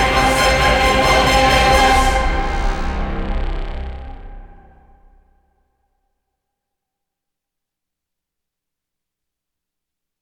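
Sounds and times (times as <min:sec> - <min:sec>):
epic choral action singing: 0:00.0 - 0:04.9
orchestra playing epic action music: 0:00.0 - 0:05.0.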